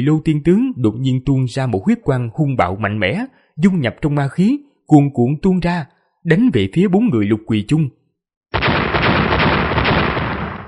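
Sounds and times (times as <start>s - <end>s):
speech: 0.0s - 8.6s
loud explosive blasts merging into a crackling roar: 8.5s - 10.6s.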